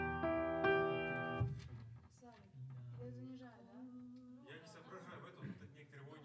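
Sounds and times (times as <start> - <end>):
piano: 0.0 - 1.6.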